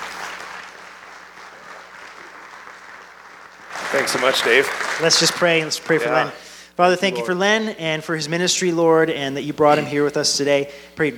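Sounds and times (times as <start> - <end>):
audience applause welcoming a speaker on stage: 0.0 - 6.4
speech: 3.9 - 11.1.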